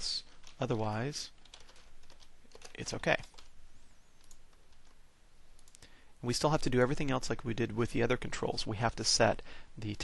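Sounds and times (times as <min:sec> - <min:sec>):
hiss: 0:00.0 - 0:10.0
speech: 0:00.6 - 0:01.4, 0:02.8 - 0:03.3, 0:06.2 - 0:10.0
code being typed on a computer keyboard: 0:01.4 - 0:03.5, 0:04.2 - 0:05.0.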